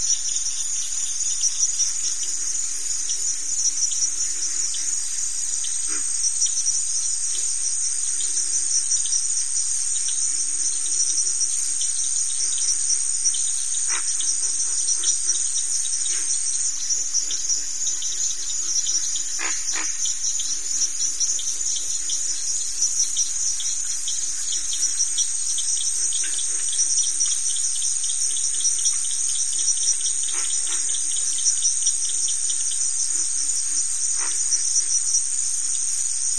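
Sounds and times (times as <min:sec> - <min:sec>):
crickets chirping: 0:00.0 - 0:36.3
cricket ratchet: 0:11.0 - 0:36.3.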